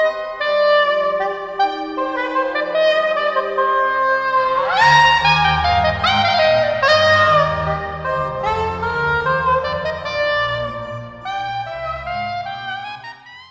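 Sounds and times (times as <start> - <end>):
oboe playing a bourree: 0.0 - 13.3.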